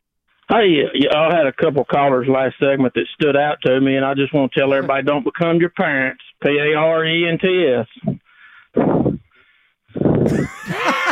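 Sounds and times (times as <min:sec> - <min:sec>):
speech: 0:00.5 - 0:08.1
laughter: 0:04.6 - 0:05.1, 0:10.3 - 0:11.1
heavy breathing on phone line: 0:08.0 - 0:10.3.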